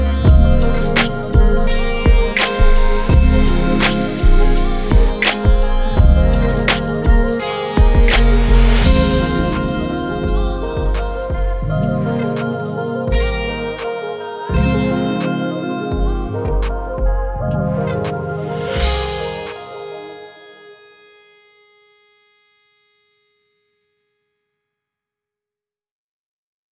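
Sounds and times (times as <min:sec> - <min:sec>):
chill lofi hip-hop beats: 0:00.0 - 0:19.8.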